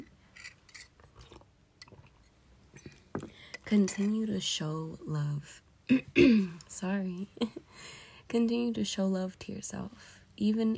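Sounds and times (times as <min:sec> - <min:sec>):
person sipping tea: 0:00.0 - 0:02.2
speech: 0:03.7 - 0:10.7.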